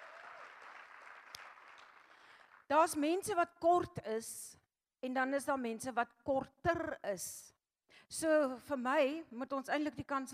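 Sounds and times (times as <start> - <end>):
congregation applause during a church service: 0.0 - 2.6
speech: 2.7 - 10.3.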